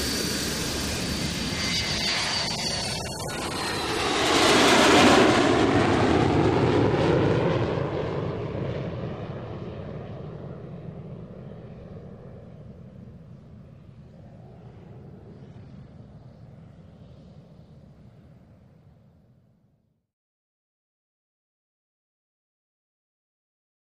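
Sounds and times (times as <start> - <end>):
727 passenger jet taking off: 0.0 - 18.9.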